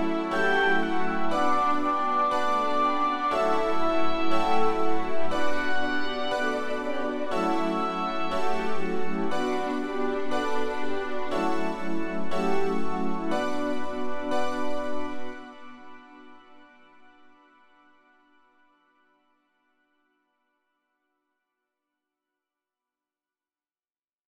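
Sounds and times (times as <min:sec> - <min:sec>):
instrumental music: 0:00.0 - 0:17.2.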